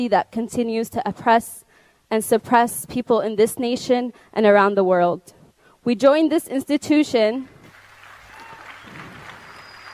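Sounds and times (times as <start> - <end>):
speech: 0.0 - 7.5
audience applause at the end of a speech at an institution: 7.6 - 9.9.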